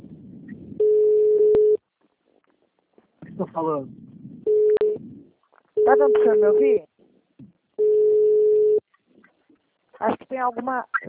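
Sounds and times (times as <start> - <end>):
call waiting beep on a phone line: 0.8 - 1.8, 4.4 - 5.0, 5.8 - 6.8, 7.8 - 8.8
speech: 3.5 - 4.0, 5.9 - 6.9, 10.4 - 11.0.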